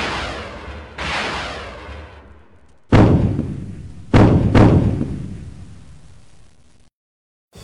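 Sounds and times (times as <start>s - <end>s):
drone turret gunfire: 0.0s - 6.0s
explosions: 0.0s - 6.5s.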